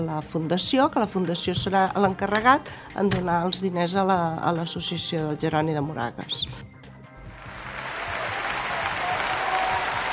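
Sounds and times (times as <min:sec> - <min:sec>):
speech: 0:00.0 - 0:06.7
applause: 0:07.4 - 0:10.1.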